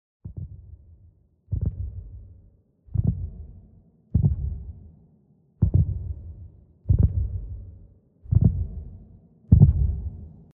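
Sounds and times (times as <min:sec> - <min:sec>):
heartbeat: 0:00.2 - 0:00.8, 0:01.5 - 0:03.6, 0:04.2 - 0:04.7, 0:05.6 - 0:07.7, 0:08.3 - 0:08.9, 0:09.5 - 0:10.2.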